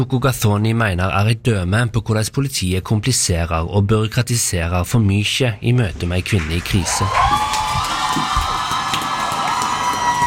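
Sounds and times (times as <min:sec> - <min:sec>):
speech: 0:00.0 - 0:08.3
theatre audience cheering and whooping: 0:06.4 - 0:10.2.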